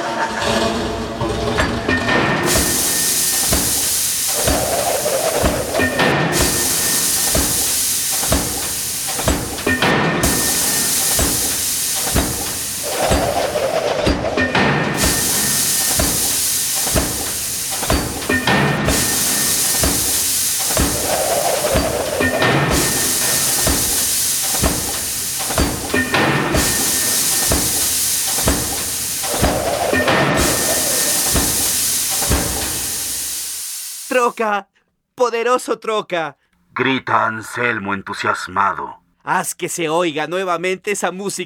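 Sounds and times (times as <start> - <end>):
engines and propellers running: 0.2 - 33.5
hissing: 2.4 - 34.4
speech: 35.3 - 41.4.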